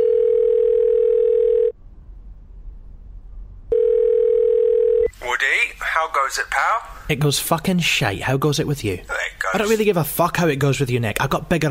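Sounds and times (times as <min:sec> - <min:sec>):
telephone dial tone: 0:00.0 - 0:01.7, 0:03.7 - 0:05.1
speech: 0:06.2 - 0:11.6.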